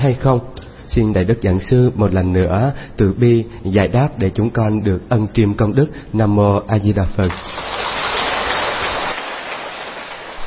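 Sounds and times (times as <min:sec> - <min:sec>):
speech: 0:00.0 - 0:07.8
round of applause: 0:07.4 - 0:10.4.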